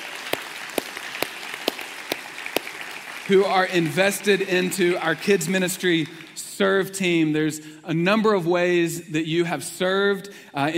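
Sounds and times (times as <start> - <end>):
rhythmic clapping at a church service: 0.0 - 7.1
speech: 3.3 - 10.7.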